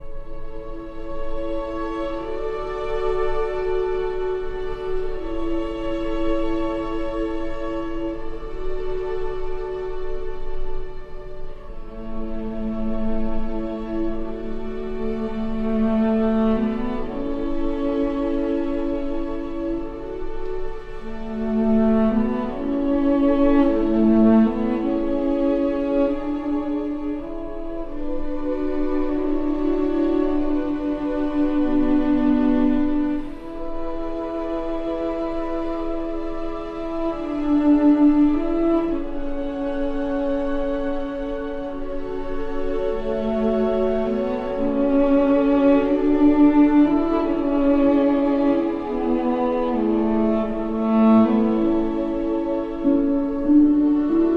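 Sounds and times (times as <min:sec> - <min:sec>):
cello and strings: 0:00.0 - 0:54.3.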